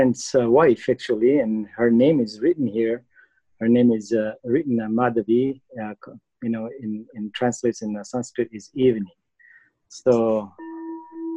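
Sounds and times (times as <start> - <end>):
speech: 0.0 - 9.2, 9.9 - 10.6
humming bowl ringing: 10.5 - 11.3.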